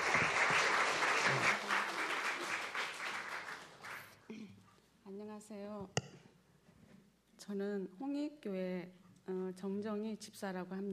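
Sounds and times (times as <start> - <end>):
audience applause: 0.0 - 4.2
speech: 7.5 - 10.9.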